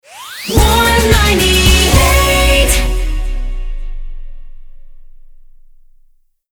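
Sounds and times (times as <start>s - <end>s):
jingle: 0.4s - 4.5s.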